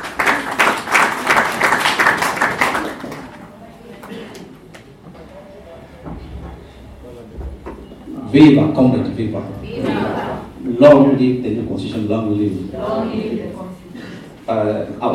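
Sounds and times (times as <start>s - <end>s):
audience applause: 0.0s - 4.4s
speech: 8.4s - 10.0s, 10.6s - 13.8s, 14.5s - 15.1s.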